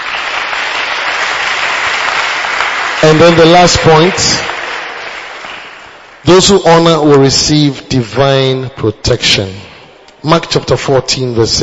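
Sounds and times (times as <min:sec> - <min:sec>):
crowd clapping: 0:00.0 - 0:06.8
speech: 0:03.0 - 0:04.5, 0:06.2 - 0:11.6.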